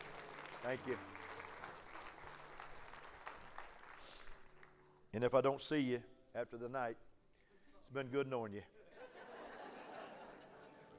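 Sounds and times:
audience clapping: 0.0 - 5.0
speech: 0.6 - 1.2, 5.2 - 7.1, 7.9 - 8.8
laughter: 8.8 - 10.9.

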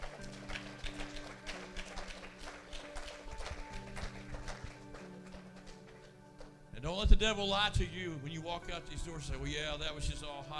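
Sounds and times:
crowd clapping hands in praise: 0.0 - 6.6
organ-like chords: 0.0 - 10.5
speech: 6.8 - 10.5.

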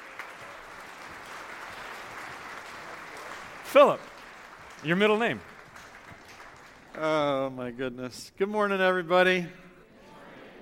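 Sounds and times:
church congregation applauding to welcome the preacher: 0.0 - 7.7
speech: 3.7 - 4.1, 4.8 - 5.5, 7.0 - 9.6.

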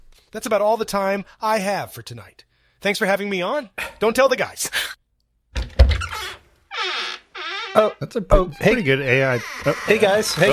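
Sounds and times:
speech: 0.3 - 4.9, 7.8 - 10.5
heavy thunk and rattle of studio door: 5.6 - 6.4
creaky studio door with high grinding creak: 5.6 - 10.5.

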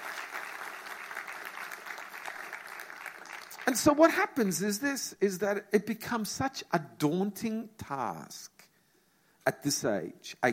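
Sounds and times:
crowd applause: 0.0 - 3.9
speech: 3.7 - 8.6, 9.5 - 10.5.

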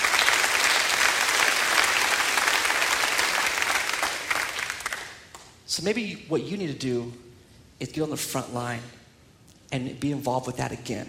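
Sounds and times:
audience applause: 0.0 - 5.3
speech: 5.8 - 9.0, 9.7 - 11.0.

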